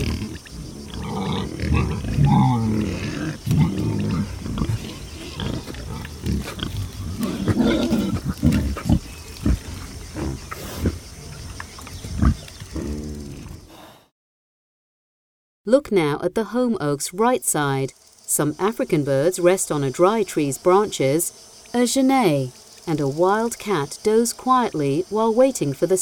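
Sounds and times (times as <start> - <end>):
wild boars grunting: 0.0 - 14.1
speech: 15.7 - 26.0.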